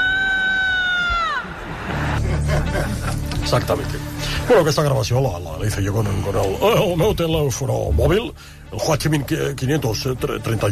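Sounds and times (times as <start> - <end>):
woman screaming loudly at night: 0.0 - 1.6
laughter: 1.2 - 3.6
speech: 3.5 - 10.7.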